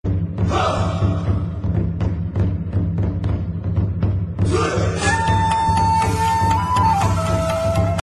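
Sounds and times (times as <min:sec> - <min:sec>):
drums: 0:00.0 - 0:08.0.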